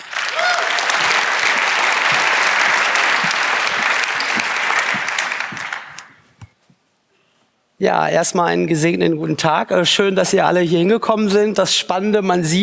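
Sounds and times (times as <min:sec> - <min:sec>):
audience applause: 0:00.0 - 0:06.2
speech: 0:07.8 - 0:12.6.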